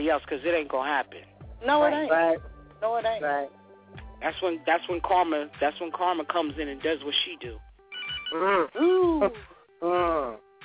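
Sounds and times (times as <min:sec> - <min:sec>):
speech: 0:00.0 - 0:03.6, 0:04.2 - 0:07.7, 0:08.3 - 0:10.5
phone ringing: 0:07.9 - 0:08.4.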